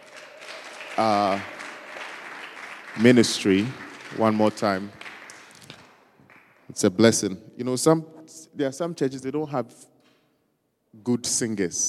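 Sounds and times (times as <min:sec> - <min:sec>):
audience clapping: 0:00.0 - 0:07.0
speech: 0:01.0 - 0:01.6, 0:03.0 - 0:05.0, 0:06.7 - 0:09.9, 0:11.0 - 0:11.8.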